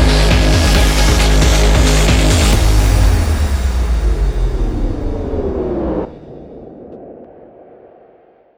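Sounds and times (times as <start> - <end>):
bass: 0.0 - 6.2.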